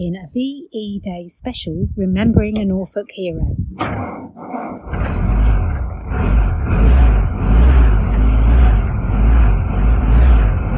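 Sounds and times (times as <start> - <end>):
speech: 0.0 - 5.4
1943 Ford Jeep with Willys engine running: 3.8 - 10.7.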